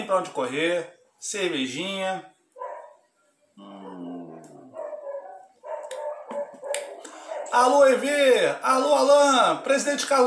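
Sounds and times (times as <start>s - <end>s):
speech: 0.1s - 2.3s, 7.5s - 10.2s
dogs barking: 2.6s - 3.1s, 3.7s - 7.7s.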